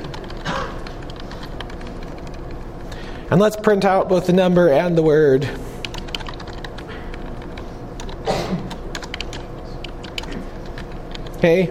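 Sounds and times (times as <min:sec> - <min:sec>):
typing on a computer keyboard during a programming demonstration: 0:00.0 - 0:02.6, 0:05.8 - 0:11.4
speech: 0:03.3 - 0:05.7, 0:11.4 - 0:11.7.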